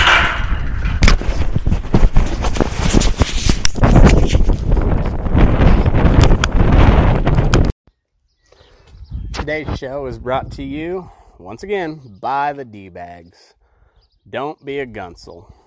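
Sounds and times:
strong outdoor wind blowing into a microphone: 0:00.0 - 0:07.7, 0:08.9 - 0:11.2
speech: 0:09.5 - 0:13.6, 0:14.3 - 0:15.6.

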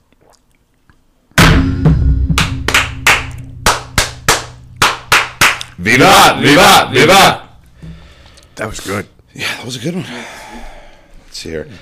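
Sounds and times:
unison clapping from a group of brothers performing a ritual fire toast: 0:02.3 - 0:06.2
speech: 0:05.8 - 0:07.4, 0:08.6 - 0:11.7.

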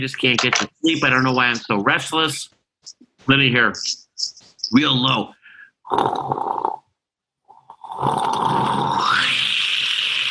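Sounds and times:
speech: 0:00.0 - 0:06.8, 0:08.0 - 0:09.5
voice imitating the bubbling of a bong hit: 0:08.0 - 0:10.3.

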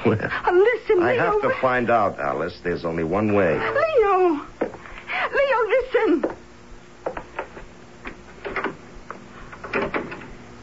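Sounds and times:
speech: 0:00.0 - 0:04.5, 0:05.4 - 0:06.4
door handle and latch rattling as a door is opened: 0:09.6 - 0:10.3.

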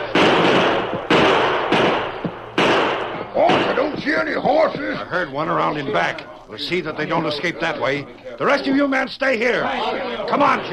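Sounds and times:
gunfire: 0:00.0 - 0:04.5
speech: 0:04.4 - 0:10.7.

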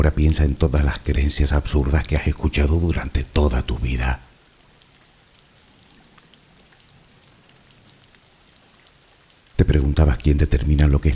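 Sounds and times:
speech: 0:00.0 - 0:04.3, 0:09.6 - 0:11.1
steady rain falling: 0:00.0 - 0:11.1.

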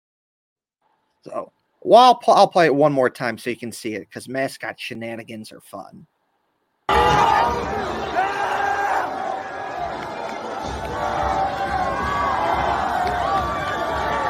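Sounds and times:
speech: 0:01.2 - 0:06.1
crowd cheering: 0:06.9 - 0:14.2.

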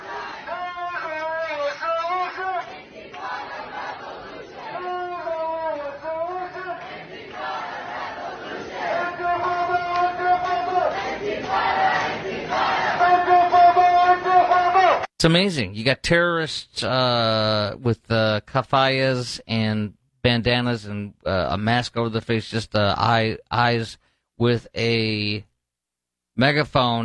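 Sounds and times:
large crowd chanting and screaming in a dining hall: 0:00.0 - 0:15.1
speech: 0:15.2 - 0:25.5, 0:26.4 - 0:27.0.

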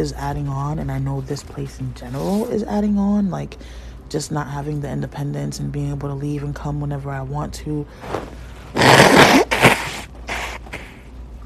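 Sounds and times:
speech: 0:00.0 - 0:08.9
person blowing nose: 0:08.0 - 0:11.1.

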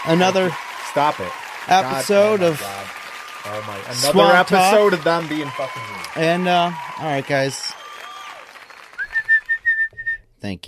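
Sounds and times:
speech: 0:00.0 - 0:07.8, 0:10.4 - 0:10.6
audience applause: 0:00.0 - 0:09.8
loud whistling: 0:01.8 - 0:10.2.

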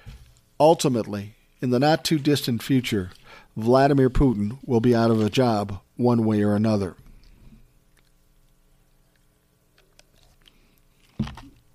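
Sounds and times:
speech: 0:00.6 - 0:07.0
person drinking water: 0:07.0 - 0:11.7.

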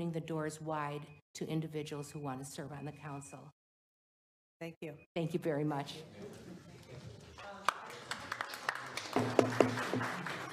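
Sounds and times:
speech: 0:00.0 - 0:03.6, 0:04.6 - 0:06.4
scattered claps after public comment: 0:07.6 - 0:10.5.

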